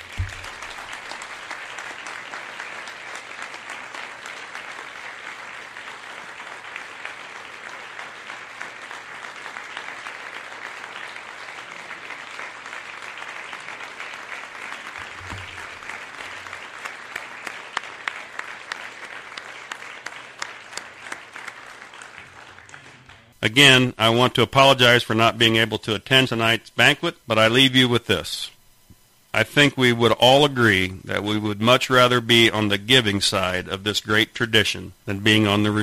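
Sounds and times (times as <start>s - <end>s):
round of applause: 0.0s - 23.4s
speech: 23.4s - 28.6s, 29.3s - 35.8s.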